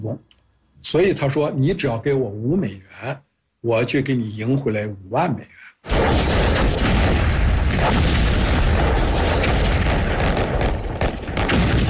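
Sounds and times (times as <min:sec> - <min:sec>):
speech: 0:00.0 - 0:07.0, 0:07.8 - 0:08.2
explosions and artillery bombardment: 0:05.9 - 0:11.8.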